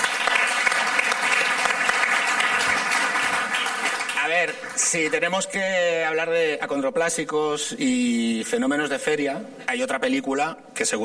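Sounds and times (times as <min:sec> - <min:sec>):
applause: 0:00.0 - 0:05.5
speech: 0:04.4 - 0:11.0.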